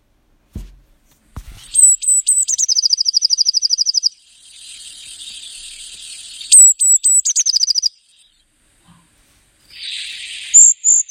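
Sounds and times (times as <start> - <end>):
Eurasian blue tit song: 1.7 - 8.5, 9.7 - 11.1.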